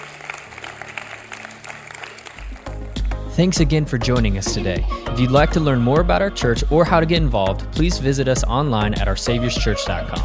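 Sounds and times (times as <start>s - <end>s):
church congregation applause at the close of a service: 0.0s - 3.3s
speech: 3.4s - 10.2s.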